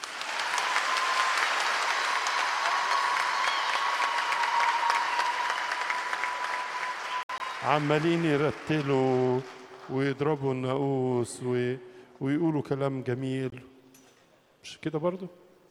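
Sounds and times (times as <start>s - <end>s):
weak sleepy audience clapping: 0.0s - 10.7s
speech: 7.6s - 13.6s, 14.8s - 15.4s.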